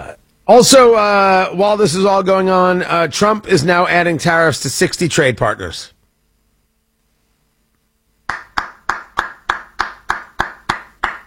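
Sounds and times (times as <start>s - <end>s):
speech: 0.5s - 6.0s
applause, hands clapping: 8.2s - 11.2s.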